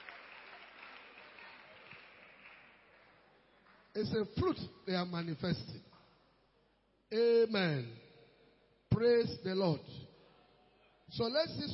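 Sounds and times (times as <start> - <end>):
crowd clapping: 0.0 - 4.2
speech: 4.0 - 5.9, 7.1 - 8.0, 9.0 - 10.1, 11.1 - 11.7.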